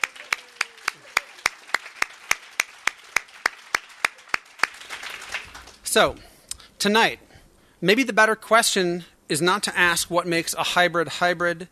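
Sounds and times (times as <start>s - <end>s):
audience applause: 0.0s - 5.9s
speech: 6.0s - 7.2s, 7.8s - 11.7s.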